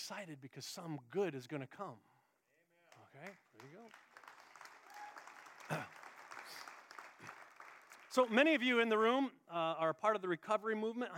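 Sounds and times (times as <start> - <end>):
speech: 0.1 - 2.2, 3.1 - 4.1, 5.7 - 5.9, 8.2 - 11.1
audience applause: 3.2 - 8.6.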